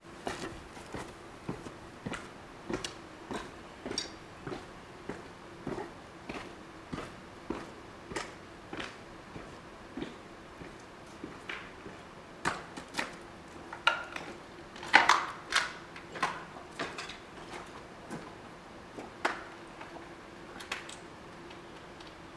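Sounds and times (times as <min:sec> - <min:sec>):
footsteps: 0:00.0 - 0:12.0
tungsten mine washery interior ambience: 0:00.0 - 0:22.3.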